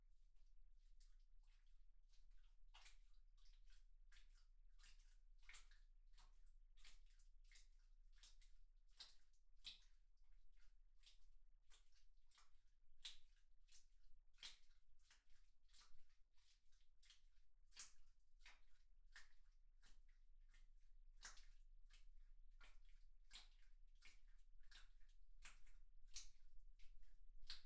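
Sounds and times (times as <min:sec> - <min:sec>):
slow wet squelching with a stick: 0:00.1 - 0:27.6.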